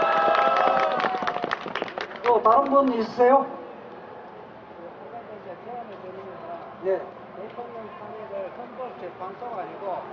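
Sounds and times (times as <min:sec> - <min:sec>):
audience applause: 0:00.0 - 0:03.2
speech: 0:02.4 - 0:03.6, 0:06.8 - 0:07.2, 0:08.8 - 0:10.1.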